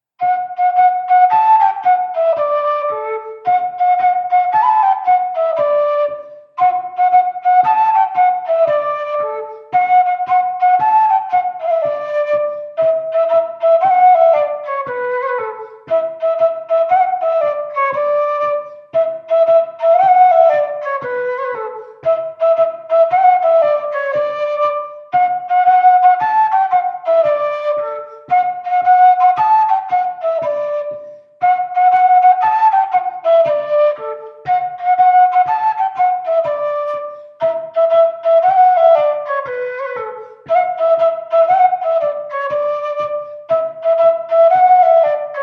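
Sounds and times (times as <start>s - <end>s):
folk dance tune from Auvergne: 0.0s - 45.4s.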